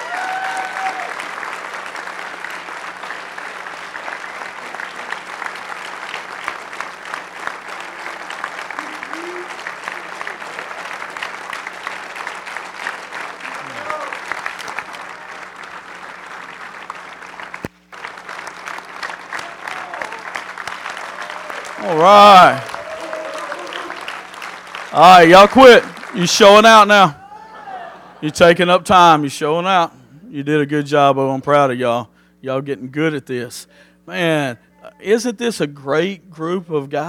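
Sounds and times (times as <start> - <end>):
audience clapping: 0.0 - 27.1
speech: 22.0 - 22.7, 25.0 - 27.2, 28.2 - 37.0.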